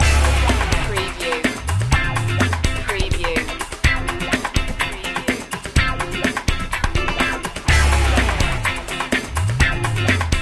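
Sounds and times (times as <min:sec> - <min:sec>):
funky Cuban music loop: 0:00.0 - 0:10.4.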